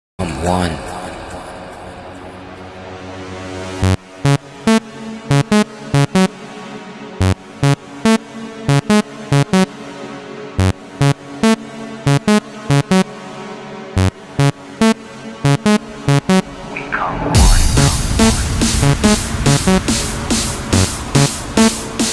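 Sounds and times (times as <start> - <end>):
trance mix: 3.7 - 22.1.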